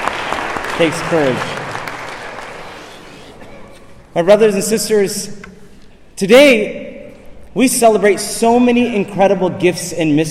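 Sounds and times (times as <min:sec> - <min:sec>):
audience applause: 0:00.0 - 0:03.6
speech: 0:00.8 - 0:01.6, 0:04.2 - 0:05.5, 0:06.2 - 0:06.9, 0:07.6 - 0:10.3.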